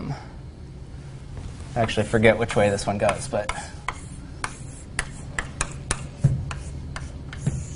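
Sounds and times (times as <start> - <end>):
speech: 1.8 - 3.8
drawing tool tapping and scratching while drawing a knot diagram by hand: 1.8 - 7.7.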